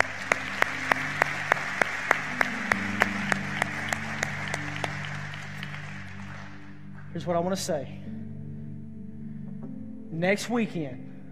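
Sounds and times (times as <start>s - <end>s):
applause: 0.0s - 7.1s
crowd clapping in rhythm: 0.0s - 7.1s
speech: 7.2s - 8.2s, 10.2s - 11.1s.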